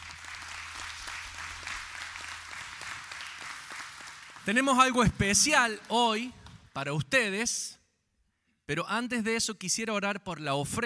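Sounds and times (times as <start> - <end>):
audience applause: 0.0 - 6.6
speech: 4.5 - 7.8, 8.7 - 10.8.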